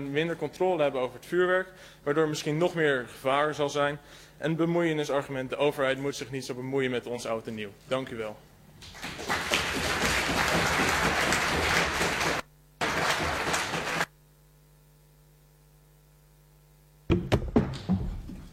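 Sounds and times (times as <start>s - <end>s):
speech: 0.0s - 9.4s
applause-like noise: 8.8s - 14.1s
hammer thrown onto the floor: 17.1s - 18.4s.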